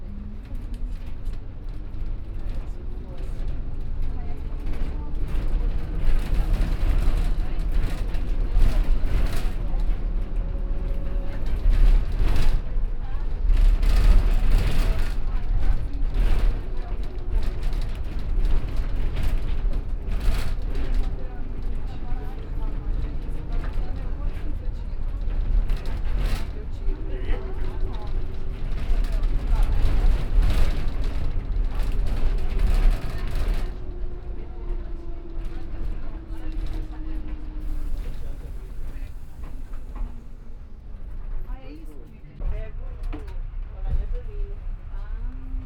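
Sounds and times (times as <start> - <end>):
electric bus interior in Brazil: 0.0 - 45.6.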